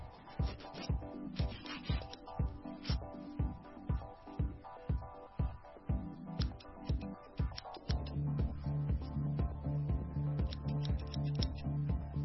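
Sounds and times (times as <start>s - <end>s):
salon ambience in a mall: 0.0s - 11.7s.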